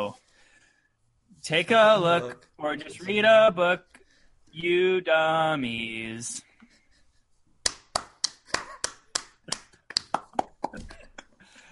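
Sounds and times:
speech: 0:01.4 - 0:06.5
applause: 0:07.7 - 0:10.7.

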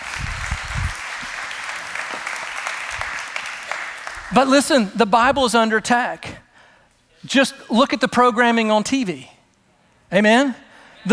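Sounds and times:
crowd applauding: 0:00.0 - 0:04.8
speech: 0:04.3 - 0:06.4, 0:07.2 - 0:09.3, 0:10.1 - 0:11.1.

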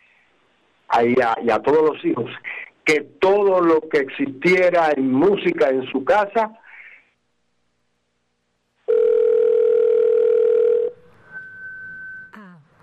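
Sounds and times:
speech: 0:00.9 - 0:06.6
telephone dial tone after a dropped phone call: 0:08.9 - 0:11.0.

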